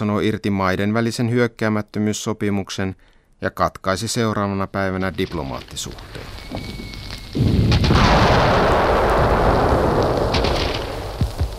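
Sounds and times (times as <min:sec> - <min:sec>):
speech: 0:00.0 - 0:08.6
Red Army artillery fire on the Karelian Isthmus: 0:05.9 - 0:11.5.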